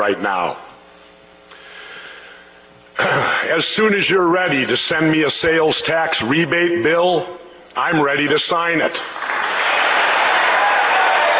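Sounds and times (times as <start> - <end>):
speech: 0.0 - 0.7, 3.5 - 9.1
Democrats in the audience applauding a line in a speech: 9.0 - 11.3.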